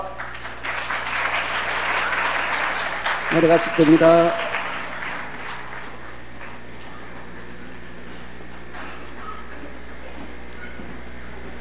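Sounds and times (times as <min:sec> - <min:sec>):
audience applause: 0:00.0 - 0:08.4
speech: 0:03.3 - 0:04.5.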